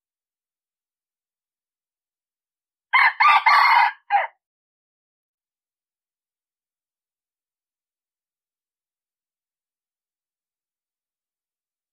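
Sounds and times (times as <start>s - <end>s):
red junglefowl crowing: 2.9s - 4.4s.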